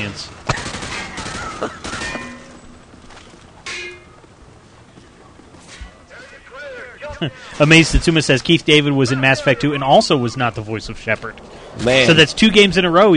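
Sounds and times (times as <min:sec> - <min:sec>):
speech: 0:00.0 - 0:00.5, 0:01.6 - 0:02.0, 0:07.2 - 0:13.1
gunfire from a dummy target in a video game shooting range: 0:00.5 - 0:02.2.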